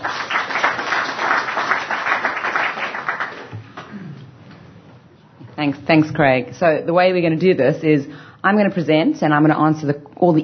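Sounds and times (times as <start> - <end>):
audience applauding to welcome two presenters onto the stage: 0.0 - 3.9
speech: 5.6 - 10.4.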